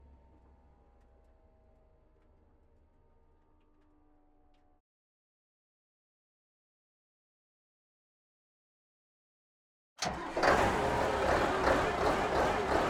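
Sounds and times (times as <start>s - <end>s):
Stridsfordon 90 engine intake during slow onboard driving: 10.0s - 12.8s.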